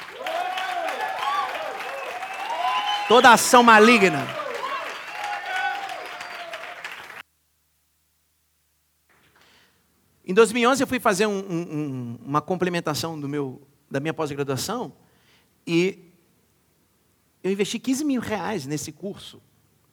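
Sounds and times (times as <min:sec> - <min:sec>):
audience applause: 0:00.0 - 0:07.2
speech: 0:03.1 - 0:04.4, 0:10.3 - 0:15.0, 0:15.6 - 0:16.1, 0:17.4 - 0:19.5.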